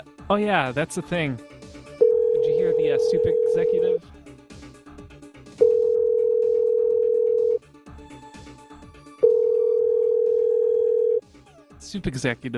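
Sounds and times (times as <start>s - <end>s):
speech: 0.3s - 1.5s, 2.8s - 4.2s, 11.9s - 12.5s
ringback tones of an outgoing phone call: 2.0s - 4.0s, 5.6s - 7.6s, 9.2s - 11.2s.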